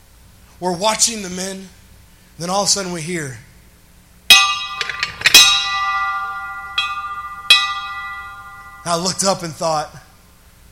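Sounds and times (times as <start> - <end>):
speech: 0.6 - 1.8, 2.4 - 3.5, 8.8 - 10.0
bell rung to signal the start: 4.3 - 9.6.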